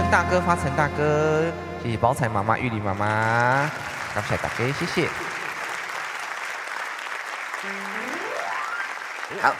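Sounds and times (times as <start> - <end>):
speech: 0.1 - 5.3
audience applause: 2.9 - 9.5.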